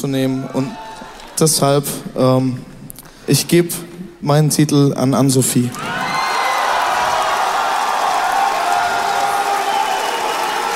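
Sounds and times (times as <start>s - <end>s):
speech: 0.0s - 0.8s, 1.4s - 2.7s, 3.3s - 6.0s
audience booing at an award ceremony: 5.8s - 10.7s.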